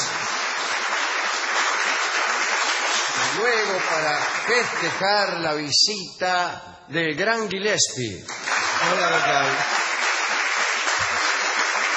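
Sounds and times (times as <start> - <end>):
audience applause welcoming a guest in a radio studio: 0.0 - 5.5, 8.3 - 11.9
speech: 3.4 - 9.8.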